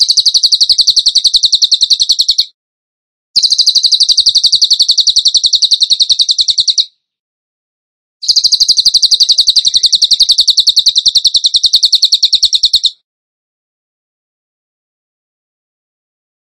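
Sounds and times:
bird shrill repeated notes: 0.0 - 2.6, 3.4 - 7.0, 8.2 - 13.0.

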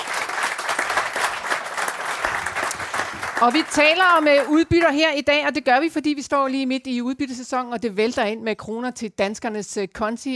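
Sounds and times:
audience applause welcoming a panel at a Danish investment talk event: 0.0 - 4.6
speech: 3.4 - 10.3.

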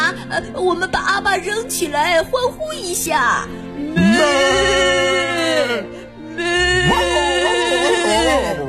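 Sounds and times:
speech: 0.1 - 7.2
sheep bleating: 3.9 - 5.7, 6.5 - 8.5.

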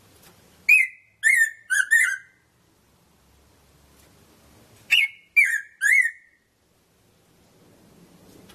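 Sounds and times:
red-throated parrotfinch Erythrura psittacea calling: 0.7 - 2.4, 4.9 - 6.4.

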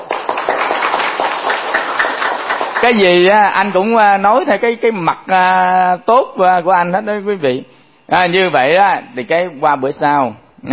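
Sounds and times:
audience clapping at a Buddhist monk's dharma talk: 0.0 - 3.4
speech: 2.8 - 10.7.

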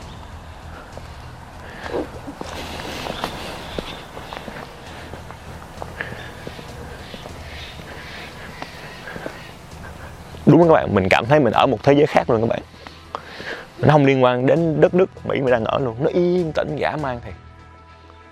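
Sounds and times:
footsteps walking into Bohemian Grove: 0.0 - 10.6
steady low noise: 0.0 - 16.8
speech: 10.5 - 12.7, 13.8 - 17.4.

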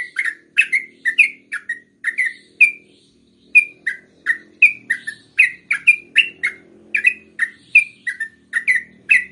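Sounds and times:
yellow-vented bulbul producing chirped down-slurred notes: 0.0 - 9.2.

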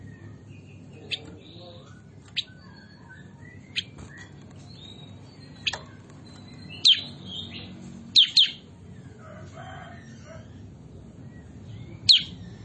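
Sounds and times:
bulbul chirping: 1.0 - 8.7, 12.0 - 12.5.

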